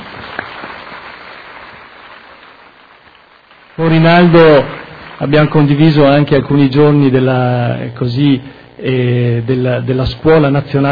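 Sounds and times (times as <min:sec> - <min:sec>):
audience applause: 0:00.0 - 0:06.2
speech: 0:03.8 - 0:10.9.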